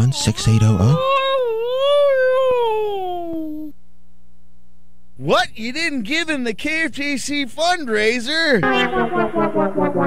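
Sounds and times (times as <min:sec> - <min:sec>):
speech: 0:00.0 - 0:01.2, 0:05.2 - 0:10.0
husky dog whining: 0:00.0 - 0:03.7.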